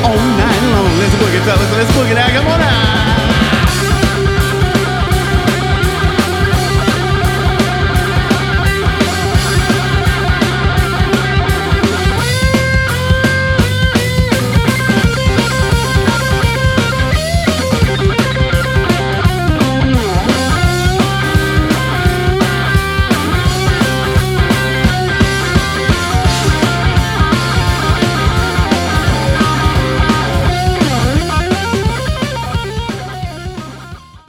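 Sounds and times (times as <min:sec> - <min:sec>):
southern rock music: 0:00.0 - 0:34.2.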